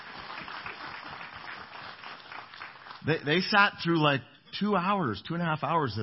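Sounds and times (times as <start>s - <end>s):
audience clapping: 0.0s - 3.7s
speech: 3.0s - 6.0s.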